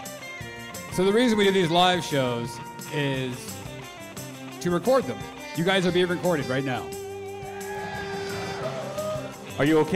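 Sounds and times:
speech: 1.0 - 3.5, 4.6 - 7.0, 9.6 - 9.9
live audience yelling and screaming: 7.4 - 9.8.

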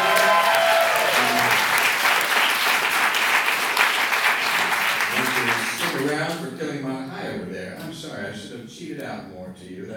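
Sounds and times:
crowd applause: 0.0 - 6.2
speech: 8.7 - 9.9.

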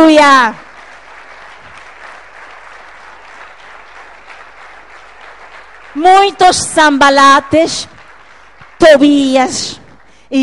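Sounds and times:
speech: 0.1 - 0.6, 6.0 - 8.0, 8.8 - 10.4
audience applause: 0.6 - 6.9, 7.8 - 9.3.

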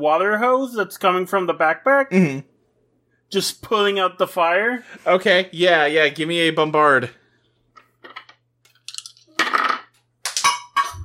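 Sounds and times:
speech: 0.0 - 2.5, 3.3 - 7.2
small die clattering on a hard table: 8.0 - 11.0.

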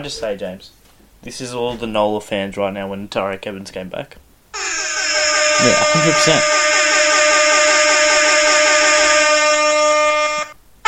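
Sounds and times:
speech: 0.0 - 4.7, 5.6 - 6.6
extended air horn blast: 4.6 - 10.8.

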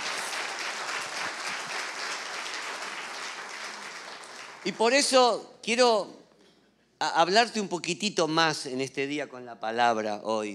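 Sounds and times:
audience applauding: 0.0 - 5.2
speech: 4.6 - 6.2, 7.0 - 10.5.

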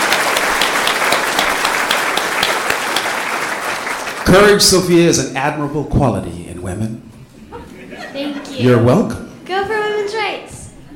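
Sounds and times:
audience applause for a brave ten-year-old girl: 0.0 - 5.0
speech: 4.3 - 7.1, 8.6 - 10.4
laughter: 7.4 - 8.8.

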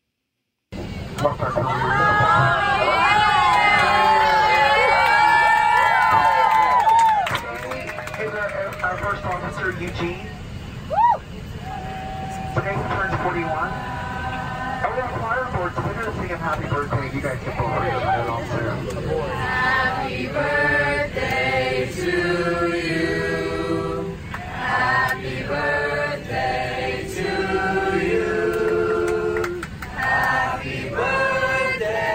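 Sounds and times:
steady low engine rumble inside an airplane cabin: 0.7 - 32.1
speech: 1.2 - 2.9, 15.0 - 23.1
youth choir singing in harmony aboard an airplane: 19.3 - 32.1.

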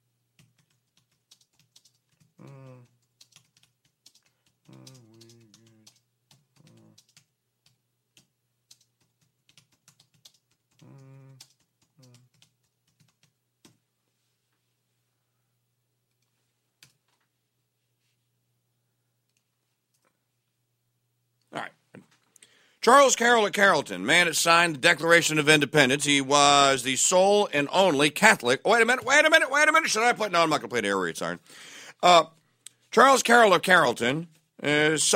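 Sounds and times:
typing a message on a computer keyboard: 0.3 - 13.8, 16.1 - 17.2
speech: 22.8 - 32.4, 33.0 - 35.1.

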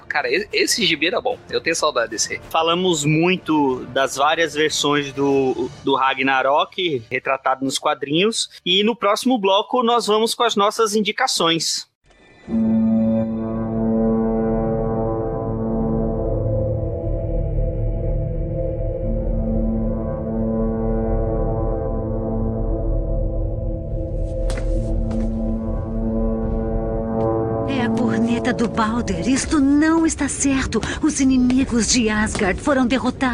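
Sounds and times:
speech: 0.2 - 11.9, 12.5 - 13.0, 28.8 - 33.3
deep sustained alarm horn blaring: 12.2 - 30.5.

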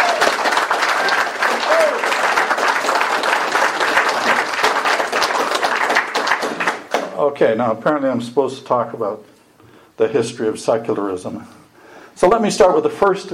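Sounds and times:
audience applause: 0.0 - 7.1
speech: 7.2 - 9.3, 10.0 - 11.6, 12.2 - 13.3.

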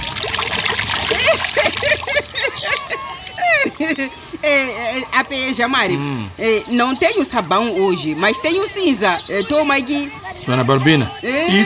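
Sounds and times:
water running from tap: 0.0 - 3.6
hands washing: 0.0 - 4.1
laughter: 1.0 - 5.3
speech: 3.8 - 11.6.

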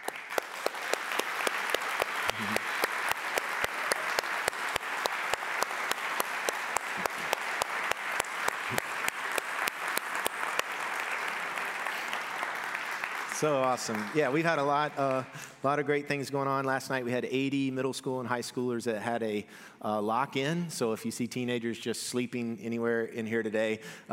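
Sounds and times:
audience applauding for veterans: 0.0 - 15.4
speech: 2.4 - 2.6, 13.4 - 24.1.

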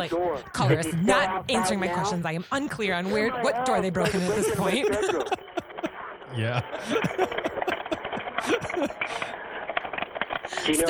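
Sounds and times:
speech: 0.0 - 5.7, 6.3 - 7.4, 10.6 - 10.8
faint voice murmuring: 0.0 - 9.4
laughter: 3.0 - 9.4, 10.5 - 10.8
rapid forceful typing on a keyboard: 4.4 - 5.9, 6.7 - 10.8.

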